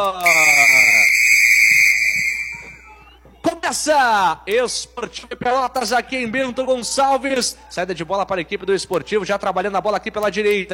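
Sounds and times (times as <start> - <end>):
speech: 0.0 - 0.4, 3.8 - 10.7
referee's whistle starting a football match: 0.2 - 3.2.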